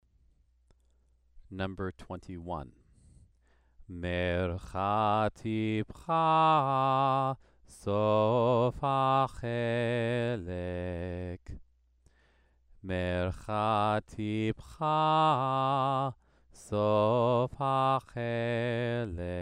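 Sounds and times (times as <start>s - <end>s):
Torah trope cantillation exercise: 3.9s - 11.6s, 12.9s - 19.4s.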